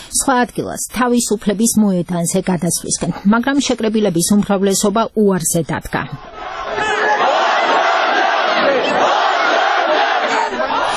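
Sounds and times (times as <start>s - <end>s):
speech: 0.1s - 6.6s
demonstrators on Baghramyan Avenue shouting chants against an electricity tariff increase: 6.2s - 10.9s.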